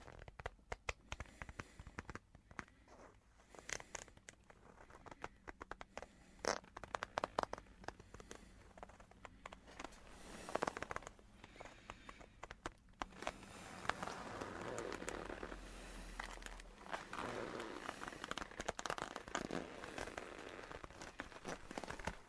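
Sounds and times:
leather coat rustling and creaking: 0.0s - 0.5s, 1.5s - 22.2s.

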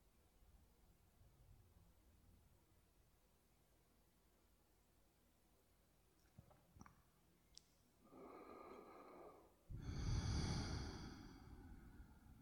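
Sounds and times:
slow deep breathing: 8.0s - 12.4s.

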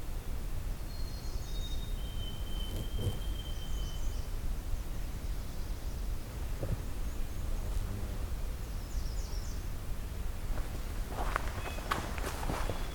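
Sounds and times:
low rumble and hiss: 0.0s - 12.9s
birds chirping and whistling including White-throated Sparrow: 0.9s - 12.9s
footsteps and rustles crunching in Pine Tree Point Nature Preserve: 10.5s - 12.9s.

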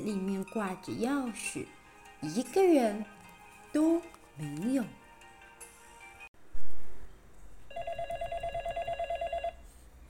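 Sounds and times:
speech: 0.0s - 5.0s
telephone ringing in a silent hall: 7.7s - 9.7s.

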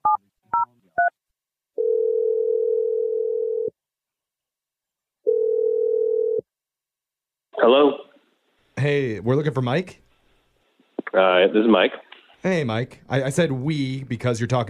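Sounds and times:
telephone ringing: 1.8s - 3.7s, 5.3s - 6.4s
speech: 7.6s - 8.0s, 8.8s - 10.0s, 11.2s - 14.6s.

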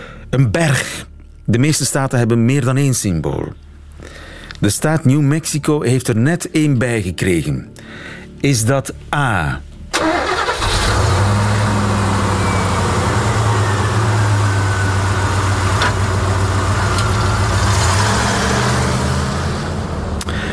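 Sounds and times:
speech: 0.3s - 10.2s
pick-up truck engine: 10.0s - 20.5s.

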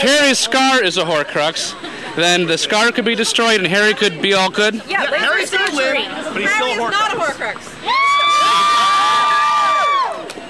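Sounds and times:
speech: 0.3s - 8.7s
crowd cheering and shouting: 7.8s - 10.4s.

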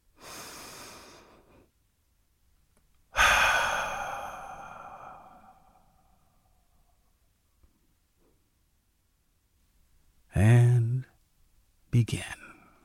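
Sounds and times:
person taking a deep breath: 0.2s - 1.7s, 3.1s - 6.3s
speech: 12.0s - 12.4s.

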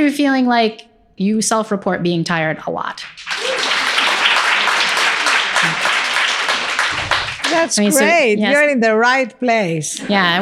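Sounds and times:
speech: 0.0s - 3.4s, 7.5s - 10.3s
crowd applauding: 3.0s - 8.2s.

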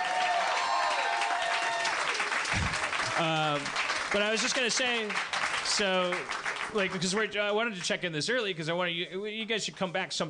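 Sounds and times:
audience applause: 0.0s - 7.3s
speech: 3.2s - 10.2s.

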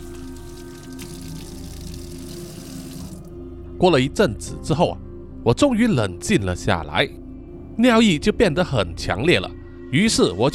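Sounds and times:
tap water running: 0.0s - 3.3s
speech: 3.8s - 7.2s, 7.8s - 10.5s.

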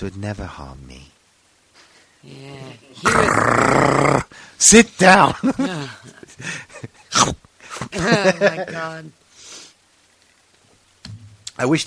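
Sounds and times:
speech: 0.0s - 1.2s, 2.2s - 9.2s, 11.6s - 11.8s
low vocal sounds: 2.2s - 4.4s
single sharp loud sneeze: 3.0s - 4.3s, 7.1s - 7.4s
laughter: 5.2s - 7.1s, 7.7s - 9.1s.

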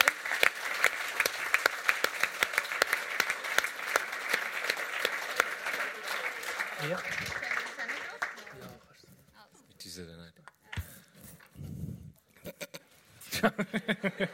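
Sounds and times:
audience applause at a live show: 0.0s - 8.9s
speech: 6.8s - 7.3s, 13.4s - 14.3s
laughter: 13.2s - 14.3s.

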